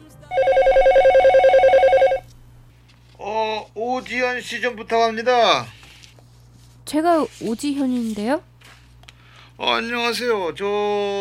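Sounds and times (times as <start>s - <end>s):
telephone ringing: 0.3s - 2.3s
speech: 4.0s - 5.8s, 6.9s - 8.5s, 9.6s - 11.1s.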